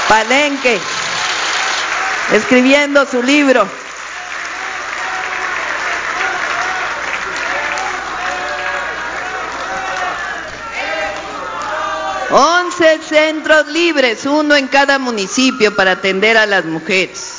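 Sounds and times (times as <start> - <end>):
audience applause: 0.0 - 12.3
speech: 0.1 - 1.0, 2.3 - 3.8, 12.3 - 17.3.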